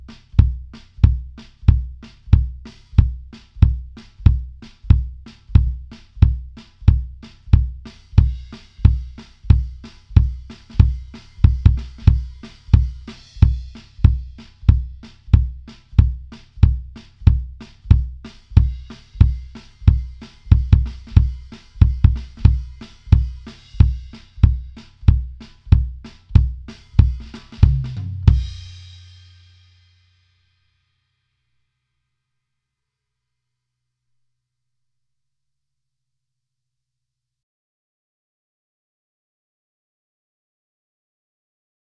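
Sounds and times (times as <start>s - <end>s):
kick drums: 0.0s - 28.7s.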